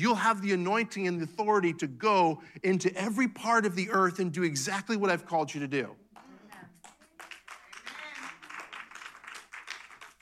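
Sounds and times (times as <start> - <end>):
speech: 0.0 - 6.0
sparse hand clapping from a small group: 6.2 - 10.2.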